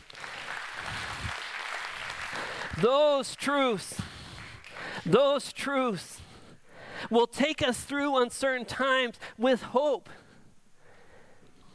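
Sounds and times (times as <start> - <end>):
audience clapping: 0.0 - 5.1
speech: 2.8 - 4.1, 5.0 - 6.2, 7.0 - 10.2.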